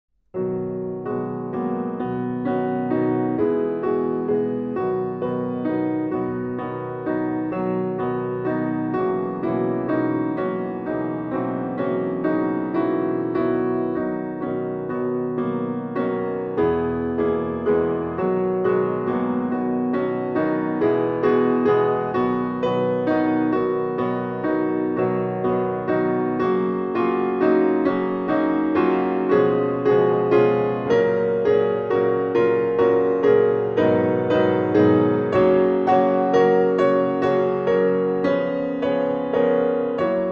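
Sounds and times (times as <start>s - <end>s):
classical étude played on piano: 0.3s - 40.3s.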